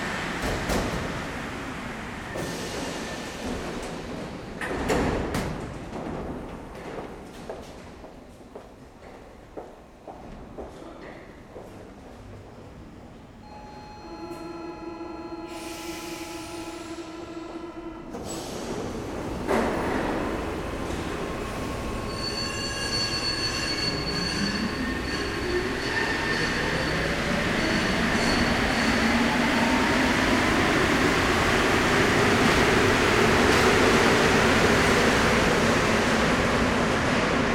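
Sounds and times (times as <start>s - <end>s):
underground metro ambience at Louvre: 0.0s - 37.5s.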